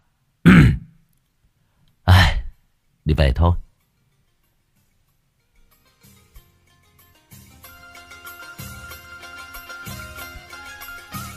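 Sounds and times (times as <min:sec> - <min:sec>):
throat clearing: 0:00.5 - 0:01.0
speech: 0:03.1 - 0:03.6.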